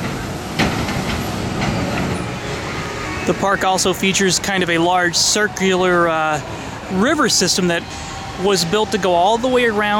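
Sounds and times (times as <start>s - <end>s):
clanks and rattles: 0.0s - 2.3s
amusement park teacups ride mechanical rumble and whir: 0.0s - 9.9s
speech: 3.3s - 9.9s.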